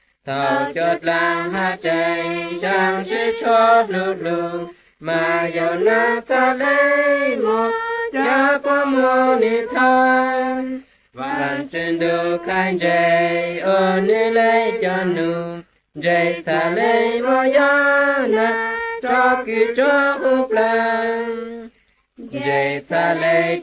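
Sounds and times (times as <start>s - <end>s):
Hmong songs: 0.0s - 23.6s.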